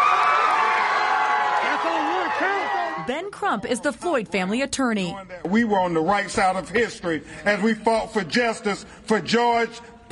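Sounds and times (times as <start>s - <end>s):
crowd cheering outside courtroom: 0.0s - 3.2s
speech: 3.1s - 10.1s.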